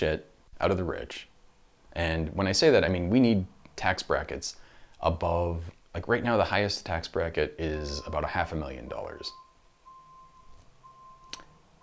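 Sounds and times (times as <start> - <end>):
speech: 0.0 - 1.3, 2.0 - 9.4
beeping in the room: 7.6 - 11.8.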